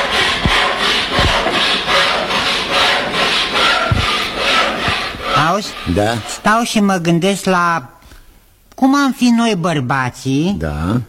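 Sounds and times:
sawing wood: 0:00.0 - 0:06.9
speech: 0:05.6 - 0:08.0, 0:08.8 - 0:11.0.

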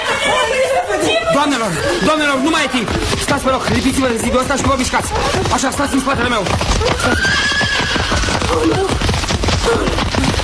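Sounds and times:
laughter: 0:00.0 - 0:07.6
runaway horse galloping past: 0:00.0 - 0:10.4
speech: 0:01.4 - 0:07.8, 0:08.5 - 0:09.0
horse whinnying: 0:01.5 - 0:03.1, 0:05.8 - 0:10.4.

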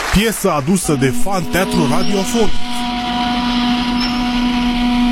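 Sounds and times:
speech: 0:00.2 - 0:02.8
siren: 0:01.0 - 0:05.1.

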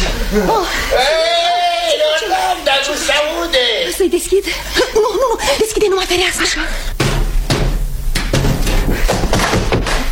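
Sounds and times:
speech: 0:00.1 - 0:01.1, 0:02.5 - 0:06.9
laughter: 0:04.1 - 0:05.9
knocking on a door: 0:07.0 - 0:10.0.

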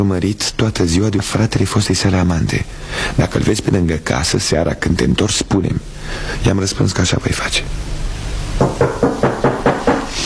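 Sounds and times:
speech: 0:00.0 - 0:07.9, 0:08.8 - 0:09.2
hard knocking on a door: 0:08.6 - 0:10.1.

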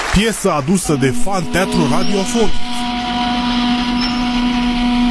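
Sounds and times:
speech: 0:00.2 - 0:02.8
siren: 0:01.0 - 0:05.0.

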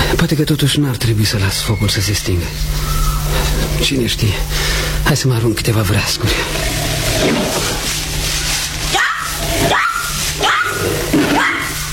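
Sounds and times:
speech: 0:00.2 - 0:06.6, 0:07.2 - 0:08.0
panther roaring: 0:05.8 - 0:11.8.

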